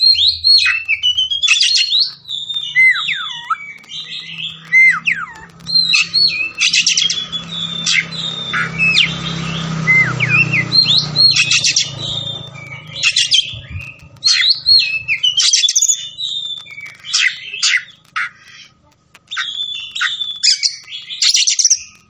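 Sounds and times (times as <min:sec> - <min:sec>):
low hum: 0:00.0 - 0:21.0
Oriental magpie-robin singing: 0:00.0 - 0:22.0.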